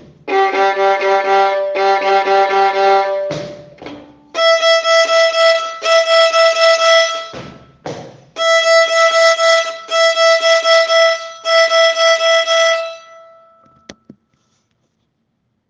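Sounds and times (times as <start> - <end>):
second and third violins: 0.0 - 7.5, 8.4 - 13.7.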